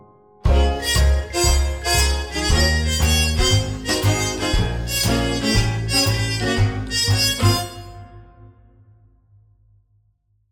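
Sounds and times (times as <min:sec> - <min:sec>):
swing music: 0:00.5 - 0:08.2.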